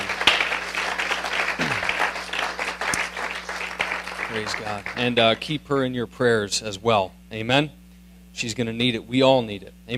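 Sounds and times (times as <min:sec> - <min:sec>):
audience applause: 0:00.0 - 0:05.5
speech: 0:04.3 - 0:07.8, 0:08.4 - 0:09.9.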